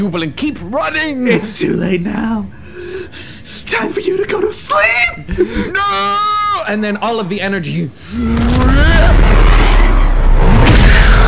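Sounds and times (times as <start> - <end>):
speech: 0.0 - 2.6, 3.7 - 9.4
explosion booming with a deep heavy rumble: 8.2 - 11.2.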